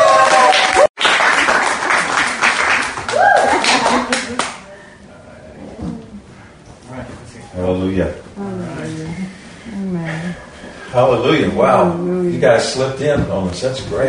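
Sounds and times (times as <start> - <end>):
crowd cheering: 0.0 - 4.7
speech: 11.1 - 14.0.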